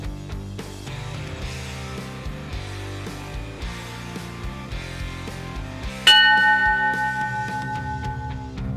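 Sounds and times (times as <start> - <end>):
music with a regular beat: 0.0 - 8.6
bell strike: 6.1 - 8.6.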